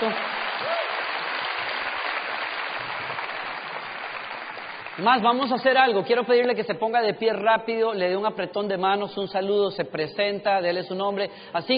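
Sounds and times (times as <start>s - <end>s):
audience applause: 0.0s - 5.1s
speech: 5.0s - 11.7s.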